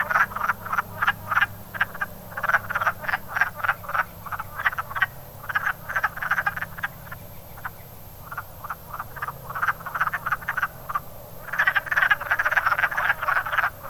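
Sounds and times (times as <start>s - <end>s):
wood frog: 0.0s - 13.8s.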